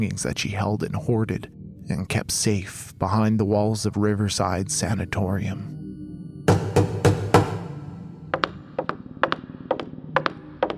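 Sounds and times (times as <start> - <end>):
speech: 0.0 - 5.8
knocking on a door: 6.5 - 7.7, 8.4 - 10.7.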